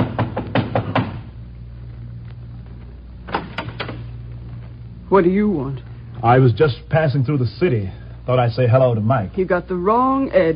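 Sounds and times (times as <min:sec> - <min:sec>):
knocking on a door: 0:00.0 - 0:01.3
low steady hum: 0:00.0 - 0:10.5
speech: 0:05.1 - 0:10.5.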